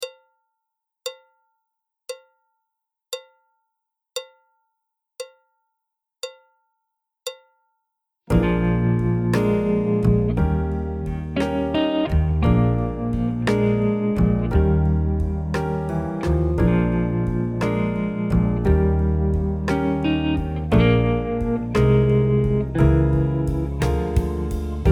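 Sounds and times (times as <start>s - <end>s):
jazz backing track: 8.3s - 24.8s.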